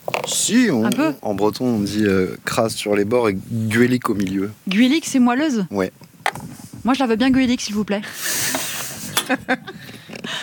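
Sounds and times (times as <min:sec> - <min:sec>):
speech: 0:00.5 - 0:06.1, 0:06.8 - 0:08.6, 0:09.3 - 0:10.4
hot griddle hissing: 0:08.0 - 0:09.4.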